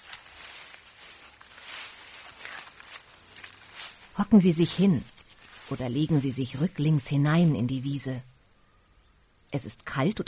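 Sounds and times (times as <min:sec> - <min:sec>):
footsteps in meadow grass: 0:00.0 - 0:06.7
speech: 0:04.2 - 0:05.1, 0:05.7 - 0:08.3, 0:09.5 - 0:10.2.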